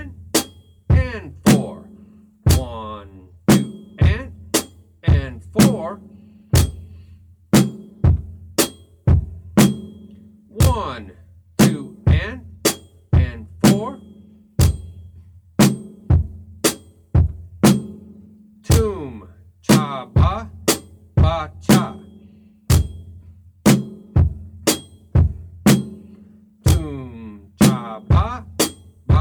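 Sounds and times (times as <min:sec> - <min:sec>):
rhythm syllables spoken: 0:00.0 - 0:00.2, 0:00.9 - 0:04.4, 0:05.0 - 0:06.1, 0:10.5 - 0:12.5, 0:13.2 - 0:14.1, 0:18.7 - 0:20.6, 0:21.2 - 0:22.2, 0:26.7 - 0:28.5
drum beat: 0:00.0 - 0:29.1.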